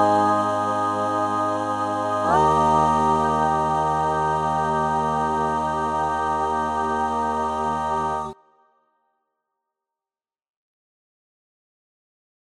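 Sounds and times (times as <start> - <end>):
barbershop tags all parts singing: 0.0 - 8.4.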